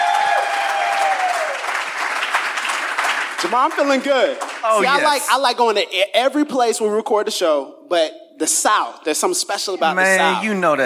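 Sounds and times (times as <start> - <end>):
crowd applauding: 0.0 - 5.4
speech: 3.4 - 10.8.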